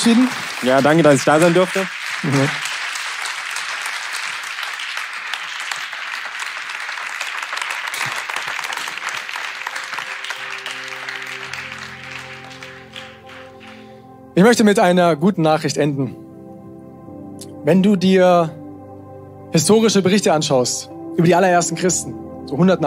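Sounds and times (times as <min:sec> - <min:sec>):
speech: 0:00.0 - 0:02.7, 0:14.4 - 0:16.2, 0:17.6 - 0:18.6, 0:19.5 - 0:22.8
audience applause: 0:00.0 - 0:14.0.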